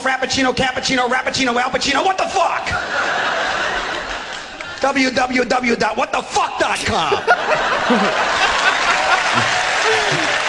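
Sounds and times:
speech: 0.0s - 3.6s, 4.8s - 10.0s
laughter: 2.2s - 10.4s
audience applause: 3.1s - 5.5s, 7.2s - 10.4s.

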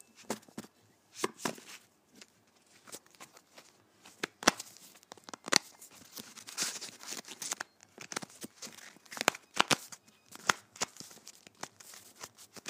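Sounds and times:
playing cards shuffling: 2.7s - 12.6s.

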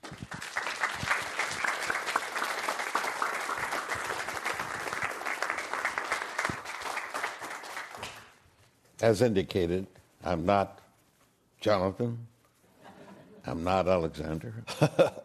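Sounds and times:
audience applause welcoming guests to the Commonwealth Club stage: 0.0s - 8.3s
speech: 9.0s - 10.8s, 11.6s - 12.3s, 13.4s - 15.2s.

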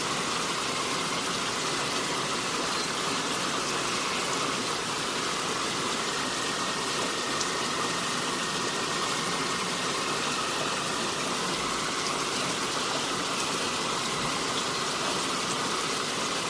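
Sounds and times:
rain: 0.0s - 16.4s.

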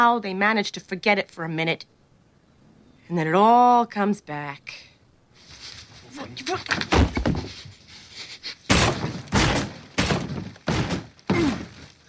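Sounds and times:
speech: 0.0s - 2.0s, 3.1s - 4.9s, 6.2s - 7.3s
fist punching a hole through a wall: 8.7s - 11.8s
person straining: 11.3s - 12.0s.

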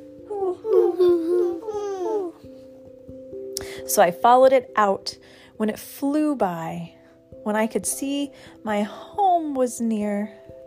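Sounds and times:
person imitating owl hoot: 0.2s - 2.4s
speech: 3.9s - 10.6s.

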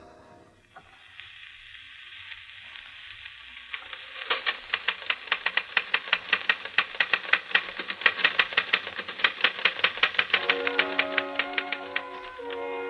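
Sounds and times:
typewriter typing played from phonograph record: 3.7s - 12.8s.

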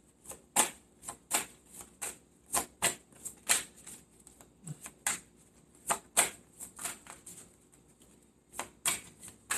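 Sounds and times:
tarot cards being shuffled and drawn: 2.9s - 9.5s.

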